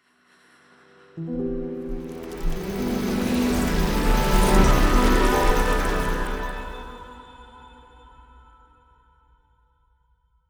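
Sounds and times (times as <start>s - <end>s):
melody: 1.4s - 7.2s.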